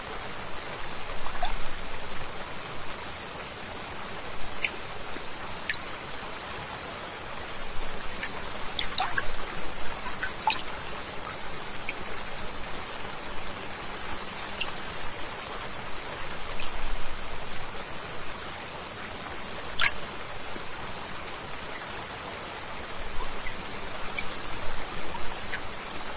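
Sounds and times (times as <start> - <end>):
steady rain: 0.0 - 26.1
brighter drips and taps: 1.2 - 1.6, 4.6 - 4.8, 8.2 - 12.0, 19.8 - 20.0.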